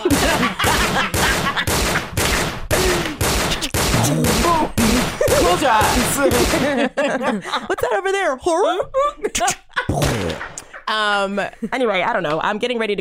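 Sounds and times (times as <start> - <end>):
laughter: 0.0 - 2.2, 4.3 - 11.8
gunshot sound effect: 0.2 - 6.7, 10.0 - 10.6
speech: 5.6 - 12.9.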